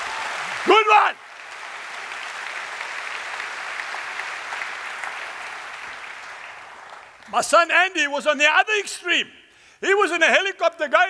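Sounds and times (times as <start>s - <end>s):
audience clapping: 0.0s - 7.5s
speech: 7.3s - 11.0s.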